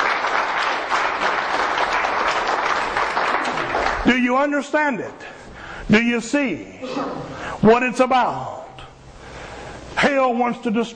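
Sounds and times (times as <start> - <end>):
audience applause: 0.0 - 4.1
speech: 4.0 - 5.3, 5.9 - 8.6, 10.0 - 10.9.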